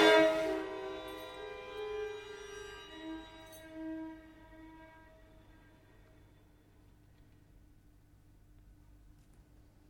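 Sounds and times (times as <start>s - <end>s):
strings: 0.0s - 7.1s.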